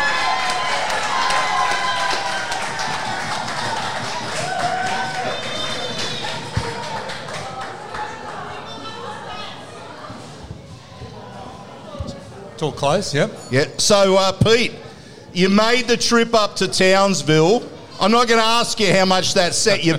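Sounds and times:
audience applause: 0.0 - 9.1
speech: 12.6 - 14.8, 15.4 - 19.9.

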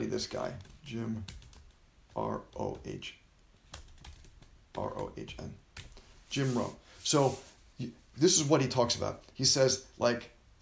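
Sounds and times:
speech: 0.2 - 1.4, 2.2 - 3.2, 4.8 - 10.6
typing on a computer keyboard: 0.6 - 3.0, 3.7 - 5.2.

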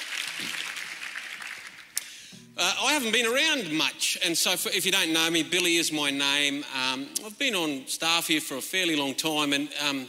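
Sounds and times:
audience applause: 0.0 - 2.0
speech: 2.6 - 10.0.

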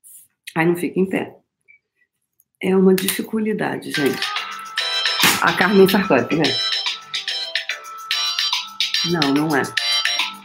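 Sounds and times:
speech: 0.6 - 1.4, 2.6 - 4.3, 5.4 - 6.8, 9.0 - 9.8
phone ringing with incoming Instagram call: 4.0 - 10.4.

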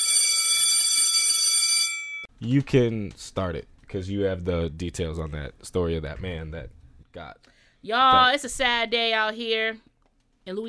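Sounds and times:
school bell ringing: 0.0 - 2.3
speech: 2.4 - 10.6.

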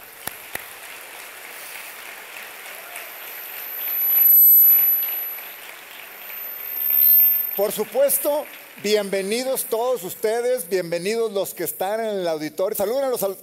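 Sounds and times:
audience applauding: 0.0 - 10.6
speech: 7.6 - 13.4.

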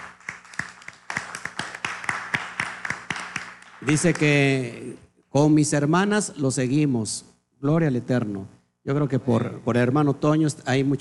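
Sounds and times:
applause: 0.0 - 4.5
speech: 3.8 - 10.9.

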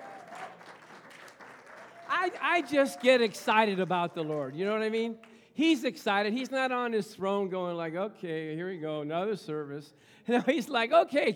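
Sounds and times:
audience clapping: 0.0 - 5.4
speech: 2.2 - 11.3.

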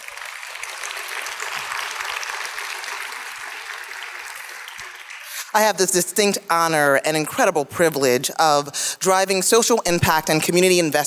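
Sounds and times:
crowd applauding: 0.0 - 6.5
speech: 5.5 - 11.0.

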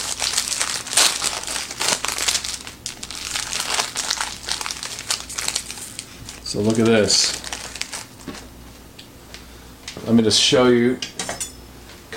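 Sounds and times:
crinkly wrapper of a sugary snack treat being torn open: 0.0 - 8.5
speech: 6.5 - 7.5, 10.1 - 11.1.

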